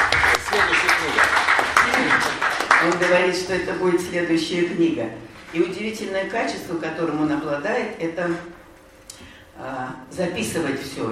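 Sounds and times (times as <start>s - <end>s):
audience clapping: 0.0s - 3.5s
speech: 3.0s - 8.6s, 9.6s - 11.1s.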